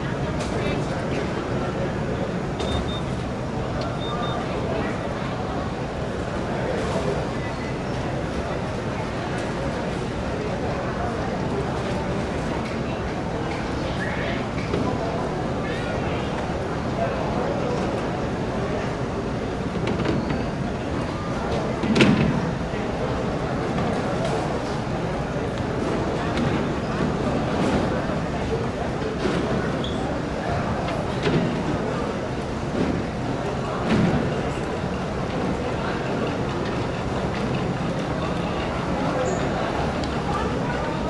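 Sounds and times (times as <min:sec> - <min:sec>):
crowd walla in an airport terminal: 0:00.0 - 0:41.0
airport security check beeping: 0:02.6 - 0:03.2, 0:03.9 - 0:04.5.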